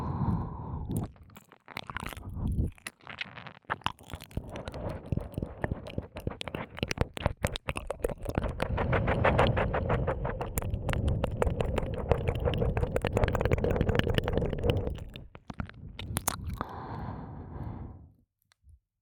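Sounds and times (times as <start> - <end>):
ear licking sounds in the left ear: 0.9 - 16.8
suction sounds in the left ear: 4.4 - 17.9.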